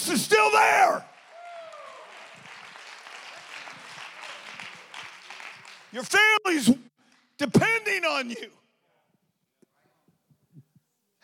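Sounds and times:
speech: 0.0 - 1.1, 5.9 - 8.6
cheers or voices: 0.0 - 6.7
many hands clapping: 1.0 - 6.4, 7.0 - 7.5.

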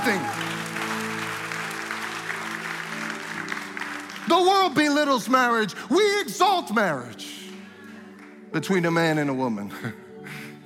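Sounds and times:
speech: 0.0 - 0.5, 4.3 - 7.4, 8.5 - 10.0
audience clapping: 0.0 - 5.6, 7.3 - 8.9.

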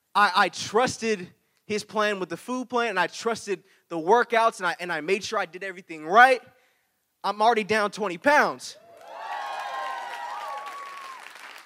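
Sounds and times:
speech: 0.2 - 6.6, 7.2 - 8.8
crowd applause: 8.8 - 11.6
high whistle or cheer: 8.8 - 11.6.

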